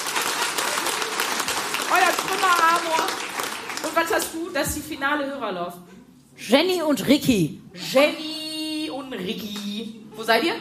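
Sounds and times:
audience applause: 0:00.0 - 0:04.1
speech: 0:01.9 - 0:08.3, 0:09.1 - 0:10.5.

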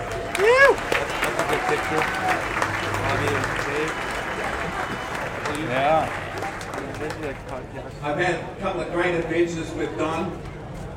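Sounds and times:
audience clapping: 0:00.0 - 0:07.7
crowd voices murmuring and calling out: 0:00.0 - 0:10.9
speech: 0:01.7 - 0:02.6, 0:05.6 - 0:10.5.

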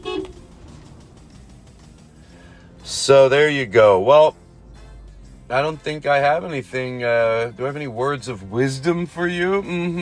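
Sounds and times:
car horn beeping: 0:00.0 - 0:00.6
speech: 0:03.1 - 0:04.4, 0:05.5 - 0:10.0.

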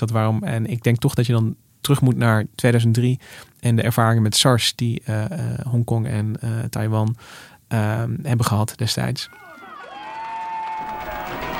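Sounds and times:
speech: 0:00.0 - 0:09.4
crowd in Taiwan cheering at a stage event celebrating the end of SARS: 0:09.3 - 0:11.5.

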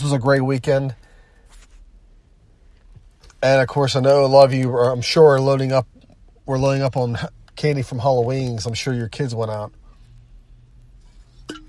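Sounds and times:
speech: 0:00.0 - 0:01.0, 0:03.4 - 0:05.9, 0:06.5 - 0:09.8
low hum: 0:00.0 - 0:11.6
glass of water clinking: 0:11.4 - 0:11.6.

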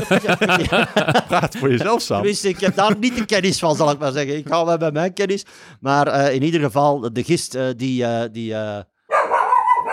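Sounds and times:
laughter: 0:00.0 - 0:04.6
speech: 0:00.0 - 0:08.9
dog barking as it walks past: 0:09.1 - 0:09.9.

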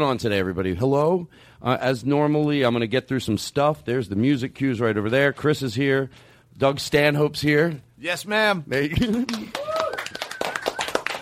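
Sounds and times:
speech: 0:00.0 - 0:09.6
weak audience applause: 0:09.0 - 0:11.2
whistle or whoop: 0:09.6 - 0:11.0.

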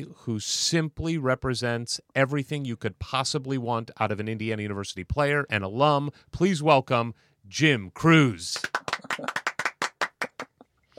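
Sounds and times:
speech: 0:00.0 - 0:09.4
audience clapping: 0:08.5 - 0:10.9.

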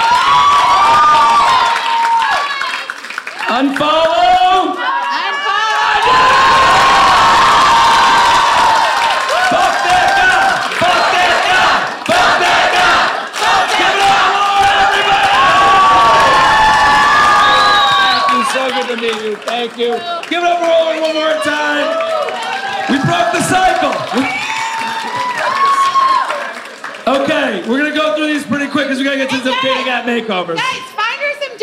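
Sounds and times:
crowd cheering: 0:00.0 - 0:30.8
speech: 0:03.6 - 0:04.2, 0:19.4 - 0:24.4, 0:28.7 - 0:31.0.

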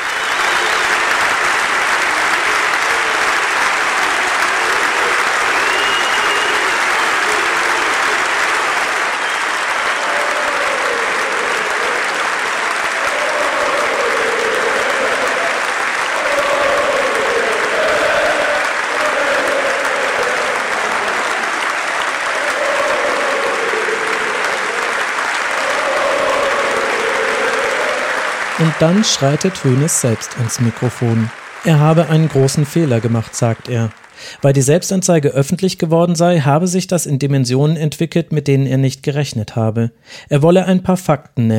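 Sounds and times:
standing ovation applause: 0:00.0 - 0:35.8
speech: 0:28.8 - 0:41.5.

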